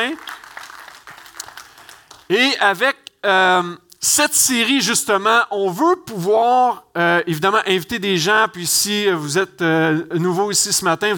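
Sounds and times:
speech: 0:00.0 - 0:00.3, 0:02.3 - 0:11.1
audience applause: 0:00.0 - 0:02.3.

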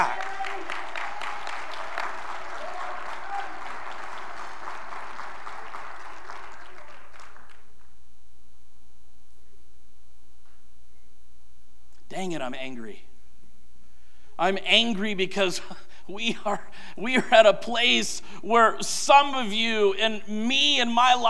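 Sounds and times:
audience clapping: 0:00.0 - 0:08.0
speech: 0:12.2 - 0:13.1, 0:14.4 - 0:21.2.

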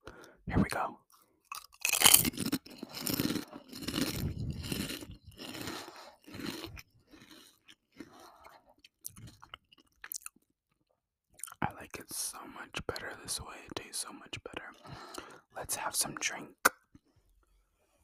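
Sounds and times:
speech: 0:00.5 - 0:01.0, 0:13.3 - 0:16.6
eating crunchy kettle potato chips: 0:01.4 - 0:10.4.

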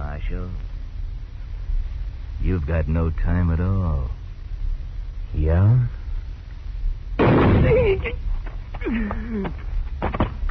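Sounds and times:
speech: 0:00.2 - 0:00.8, 0:02.4 - 0:04.2, 0:05.3 - 0:06.0, 0:07.6 - 0:10.4
gunshot in a western radio drama: 0:07.2 - 0:07.8.

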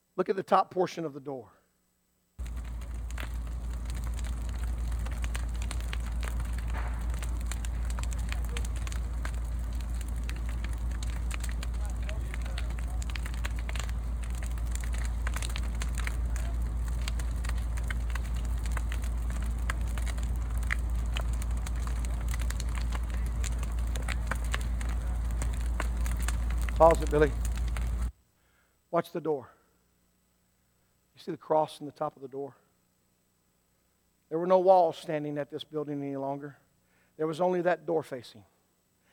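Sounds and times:
speech: 0:00.2 - 0:01.6, 0:26.8 - 0:27.4, 0:29.0 - 0:29.6, 0:31.2 - 0:32.6, 0:34.3 - 0:36.6, 0:37.2 - 0:38.5
building fire roaring and crackling: 0:02.4 - 0:28.1.

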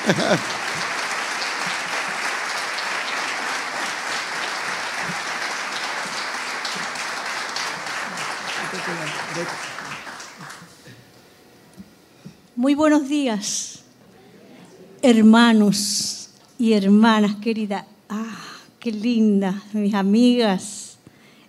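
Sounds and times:
laughter: 0:00.0 - 0:10.8
loud audience applause: 0:00.0 - 0:10.8
speech: 0:00.1 - 0:00.6, 0:12.6 - 0:13.8, 0:15.0 - 0:18.2, 0:18.8 - 0:20.8.

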